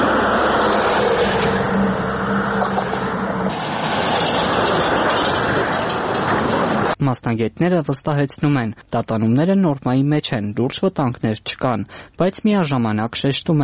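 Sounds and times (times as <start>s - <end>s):
heavy vehicle crossing a worn 640-metre bridge between Abovyan and Nor Hachn: 0.0s - 7.0s
speech: 7.1s - 13.6s.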